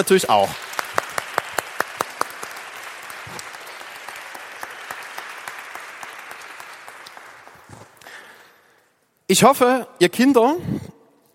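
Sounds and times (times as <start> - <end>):
speech: 0.0 - 0.7, 9.3 - 10.8
big round of applause: 0.0 - 8.4.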